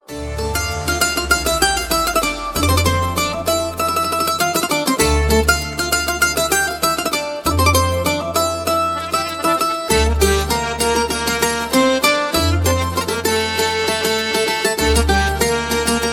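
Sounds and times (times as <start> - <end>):
Bollywood musical ringtone: 0.1 - 16.1.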